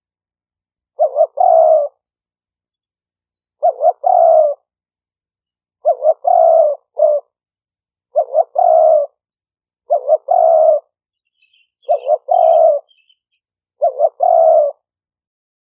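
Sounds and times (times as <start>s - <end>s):
faint chirps of another bird: 0.7s - 15.0s
spotted dove cooing: 1.0s - 2.0s, 3.6s - 4.7s, 5.8s - 7.4s, 8.1s - 14.9s.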